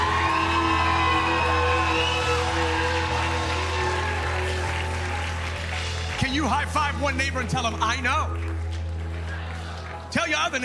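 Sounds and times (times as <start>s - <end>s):
audience shouting praise: 0.0s - 4.6s
audience clapping: 0.0s - 10.6s
speech: 6.4s - 8.5s, 10.1s - 10.6s.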